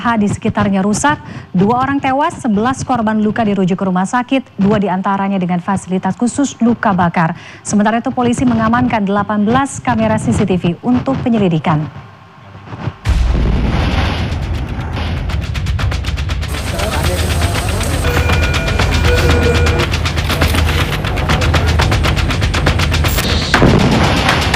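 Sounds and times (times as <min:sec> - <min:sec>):
speech: 0:00.0 - 0:12.1
rapid crackling bursts after a market explosion: 0:11.0 - 0:24.5
heavy rumbling after a market explosion: 0:12.8 - 0:24.5
explosion at a market caught on security cameras: 0:13.0 - 0:17.8, 0:19.8 - 0:24.5.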